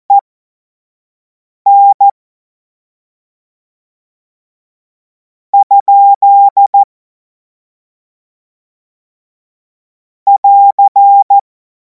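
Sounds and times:
Morse code course tones: 1.7 - 2.1, 5.6 - 6.8, 10.3 - 11.4.

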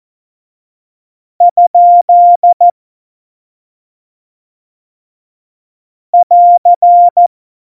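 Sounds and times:
Morse code tones: 1.5 - 2.7, 6.2 - 7.3.

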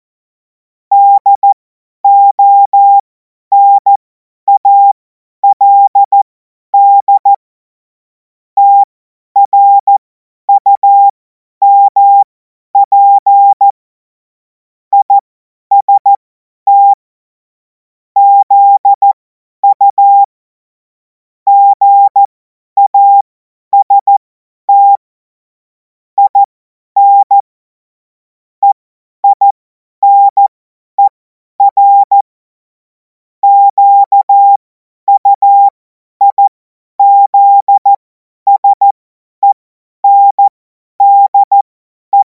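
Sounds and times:
CW Morse code beeps: 0.9 - 6.2, 6.8 - 7.4, 8.6 - 9.9, 10.5 - 13.8, 15.0 - 17.0, 18.2 - 20.3, 21.5 - 25.0, 26.2 - 27.4, 28.6 - 32.3, 33.4 - 42.2.

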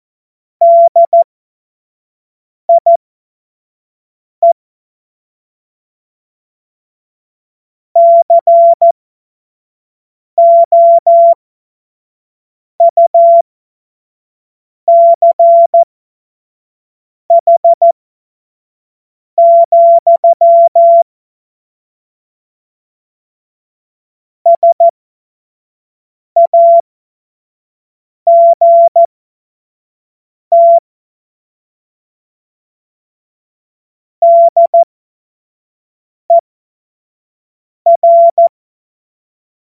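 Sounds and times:
CW Morse code beeps: 0.6 - 1.2, 2.7 - 3.0, 8.0 - 8.9, 10.4 - 11.4, 12.8 - 13.4, 14.9 - 15.8, 17.3 - 17.9, 19.4 - 21.0, 24.5 - 24.9, 26.4 - 26.8, 28.3 - 29.1, 30.5 - 30.8, 34.2 - 34.9, 37.9 - 38.5.

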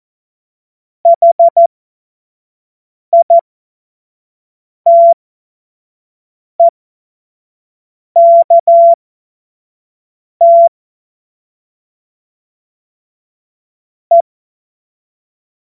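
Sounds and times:
CW Morse code beeps: 1.1 - 1.7, 3.2 - 3.4, 4.9 - 5.2, 8.2 - 9.0, 10.4 - 10.7.

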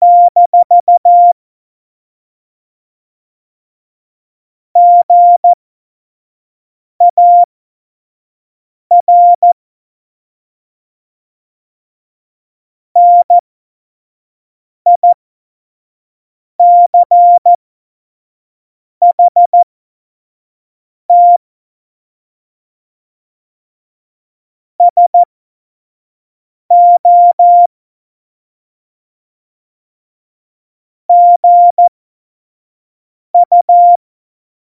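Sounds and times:
CW Morse code at tempo 70: 0.0 - 1.4, 4.8 - 5.6, 7.1 - 7.5, 8.9 - 9.6, 13.0 - 13.3, 16.6 - 17.5, 19.1 - 19.6, 21.1 - 21.4, 24.8 - 25.3, 26.7 - 27.7, 31.1 - 31.9, 33.4 - 34.0.

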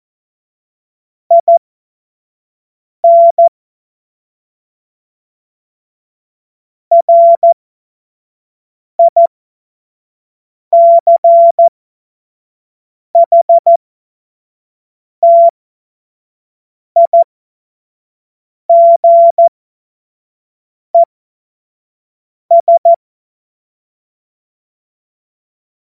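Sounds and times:
CW Morse code beeps: 1.3 - 1.6, 3.0 - 3.5, 6.9 - 7.6, 9.0 - 9.3, 10.8 - 11.7, 13.2 - 13.8, 15.2 - 15.5, 17.0 - 17.2, 18.7 - 19.5, 22.5 - 23.0.

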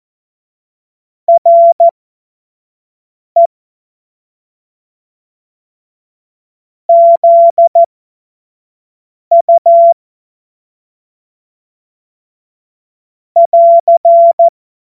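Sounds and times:
Morse code course tones: 1.3 - 1.9, 6.9 - 7.8, 13.4 - 14.5.

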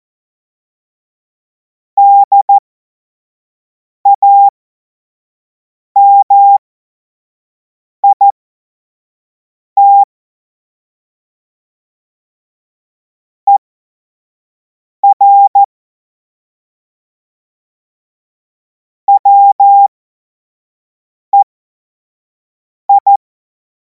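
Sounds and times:
morse code beeps: 2.0 - 2.6, 4.1 - 4.5, 6.0 - 6.6, 8.0 - 8.3, 9.8 - 10.1, 15.0 - 15.7, 19.1 - 19.9, 22.9 - 23.2.

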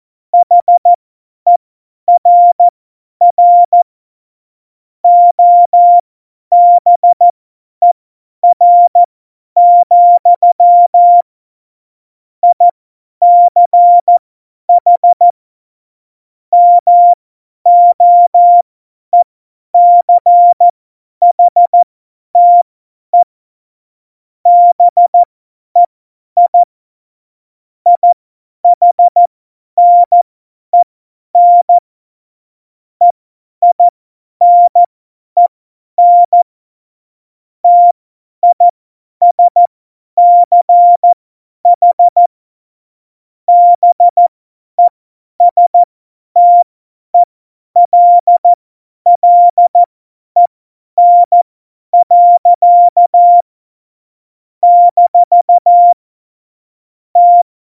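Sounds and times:
CW Morse code beeps: 0.4 - 0.9, 1.5 - 3.8, 5.0 - 7.2, 8.4 - 11.3, 12.4 - 12.6, 13.2 - 14.2, 14.8 - 15.4, 16.6 - 18.6, 19.8 - 20.7, 21.3 - 23.3, 24.5 - 26.7, 27.9 - 30.2, 31.4 - 31.8, 33.0 - 34.9, 36.0 - 36.5, 37.6 - 42.3, 43.5 - 51.4, 52.0 - 53.5, 54.6 - 56.0, 57.2 - 57.5.

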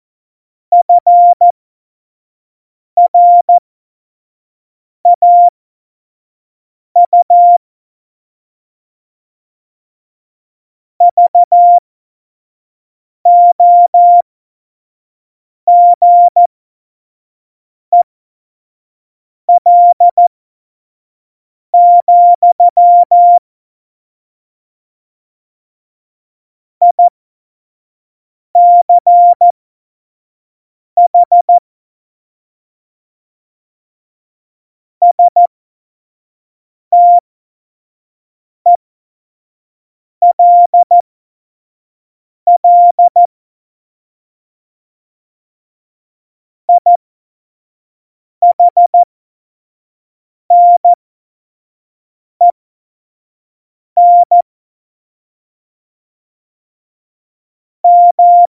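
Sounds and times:
CW Morse code beeps: 0.7 - 1.4, 3.0 - 3.5, 5.2 - 5.5, 7.0 - 7.6, 11.0 - 11.8, 13.3 - 14.2, 15.7 - 16.5, 19.6 - 20.2, 21.8 - 23.4, 26.8 - 27.1, 28.6 - 29.5, 31.0 - 31.6, 35.0 - 35.5, 36.9 - 37.2, 40.2 - 41.0, 42.5 - 43.3, 46.7 - 47.0, 48.4 - 49.1, 50.5 - 51.0, 54.0 - 54.4, 57.8 - 58.5.

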